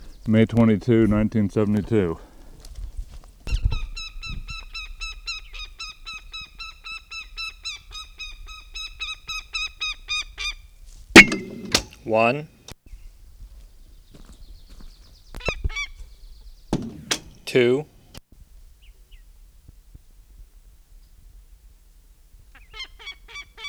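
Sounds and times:
speech: 0:00.2 - 0:02.3, 0:12.2 - 0:12.6, 0:17.5 - 0:17.9
goshawk calling at its nest: 0:03.5 - 0:12.5, 0:14.1 - 0:18.2, 0:22.5 - 0:23.6.

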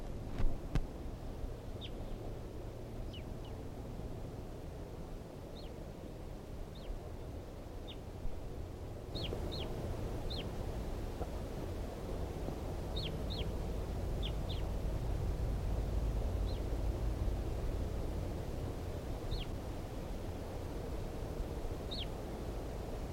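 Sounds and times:
low rumbling noise: 0:00.0 - 0:23.1
red crossbill calls: 0:09.1 - 0:10.5, 0:12.9 - 0:13.6, 0:14.2 - 0:14.7, 0:19.3 - 0:19.6, 0:21.9 - 0:22.2.

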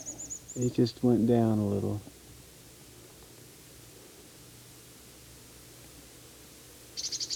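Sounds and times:
bird giving a type three call: 0:00.0 - 0:01.9, 0:07.0 - 0:07.3
hiss: 0:00.0 - 0:07.3
speech: 0:00.6 - 0:02.1.

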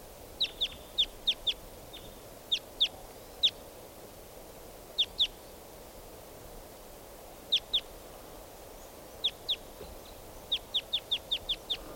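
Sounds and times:
low hiss: 0:00.0 - 0:11.9
wild birds chirping: 0:00.4 - 0:03.6, 0:04.9 - 0:05.6, 0:08.7 - 0:11.9.

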